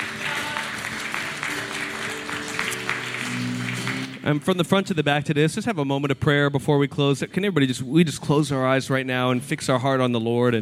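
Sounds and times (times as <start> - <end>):
audience clapping and cheering: 0.0 - 4.7
sustained musical tone: 0.0 - 5.0
speech: 4.2 - 10.6.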